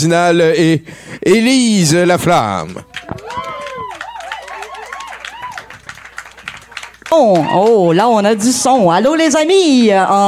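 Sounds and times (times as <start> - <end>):
speech: 0.0 - 3.2, 7.1 - 10.2
audience applause: 2.8 - 8.0.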